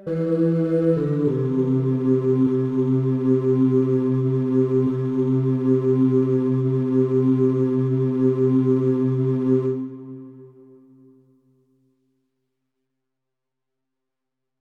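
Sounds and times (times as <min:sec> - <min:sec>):
bass: 0:00.0 - 0:10.1.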